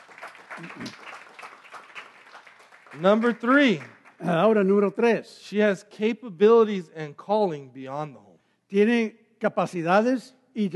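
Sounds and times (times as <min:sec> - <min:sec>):
audience applause: 0:00.0 - 0:04.6
speech: 0:00.6 - 0:01.0, 0:02.9 - 0:10.7.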